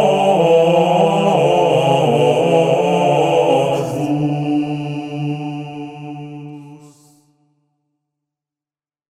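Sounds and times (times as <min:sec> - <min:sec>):
two-voice motet singing: 0:00.0 - 0:07.2.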